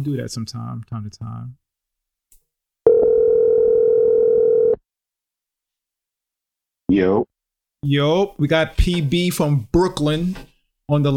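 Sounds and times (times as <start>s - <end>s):
speech: 0.0s - 1.6s, 6.9s - 11.1s
telephone dial tone as a caller connects to a sports call-in show: 2.9s - 4.8s.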